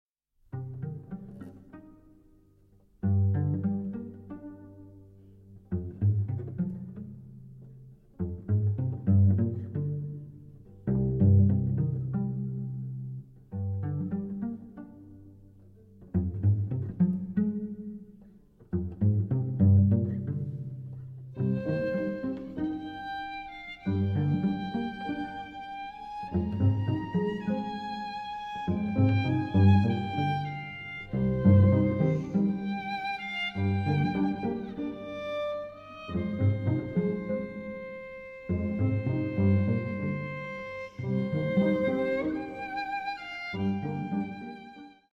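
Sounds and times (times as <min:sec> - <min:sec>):
prelude in C minor: 0:00.5 - 0:45.0.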